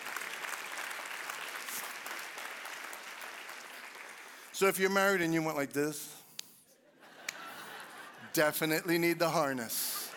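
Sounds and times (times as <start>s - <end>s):
audience clapping: 0.0s - 5.4s
speech: 4.6s - 6.2s, 8.4s - 9.9s
laughter: 6.8s - 10.1s.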